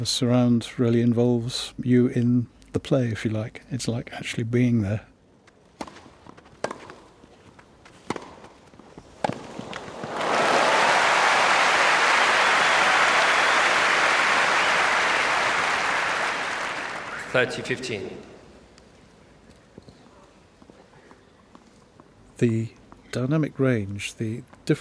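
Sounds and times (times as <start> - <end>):
speech: 0.0 - 5.1, 17.4 - 18.3, 22.4 - 24.7
crowd cheering and applauding in surround: 9.8 - 17.8.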